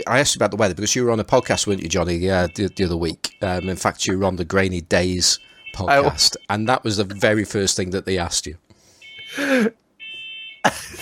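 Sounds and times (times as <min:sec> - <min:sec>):
speech: 0:00.0 - 0:08.6, 0:09.3 - 0:09.8
smoke alarm beep: 0:01.3 - 0:04.3, 0:05.2 - 0:07.3, 0:08.9 - 0:10.7
bursts of laughter: 0:10.7 - 0:11.0.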